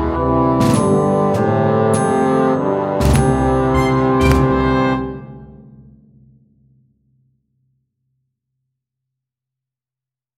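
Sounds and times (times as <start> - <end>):
bassoon melody: 0.0 - 5.7.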